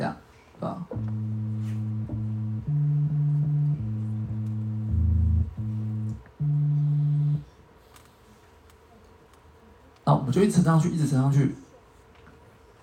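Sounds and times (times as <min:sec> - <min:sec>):
speech: 0:00.1 - 0:01.6, 0:10.3 - 0:11.6
FM synthesizer low electronic tones: 0:00.9 - 0:07.5.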